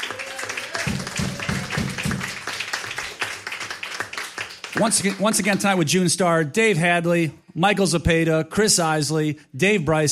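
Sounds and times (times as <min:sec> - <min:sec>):
audience clapping: 0:00.0 - 0:05.9
speech: 0:04.8 - 0:10.1.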